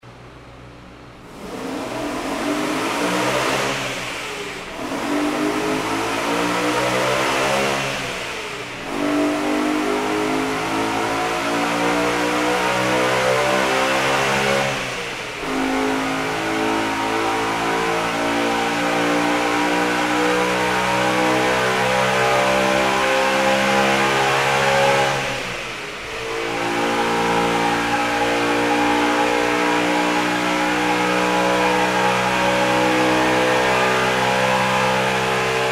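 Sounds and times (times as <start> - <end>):
BMW M3 accelerating: 1.2 - 35.6.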